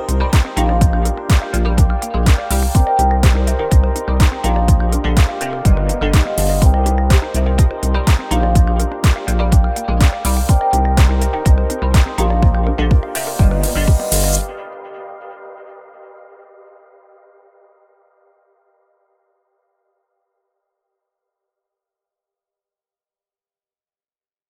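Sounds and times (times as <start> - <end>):
beat battle type beat: 0.0 - 14.6.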